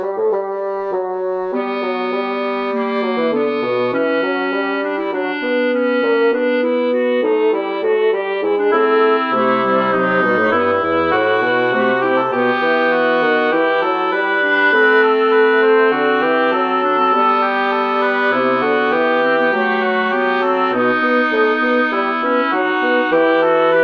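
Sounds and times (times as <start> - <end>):
small fugue for wind synth: 0.1 - 23.8.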